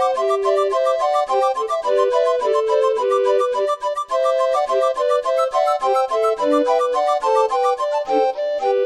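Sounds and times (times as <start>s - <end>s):
barrel organ tune: 0.0s - 8.8s.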